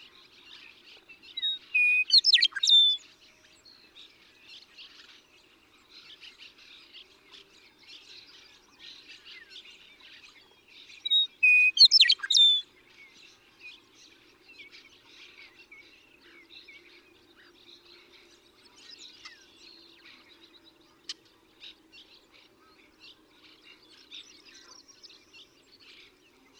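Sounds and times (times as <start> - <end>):
western meadowlark song: 1.4 - 3.0, 11.0 - 12.7.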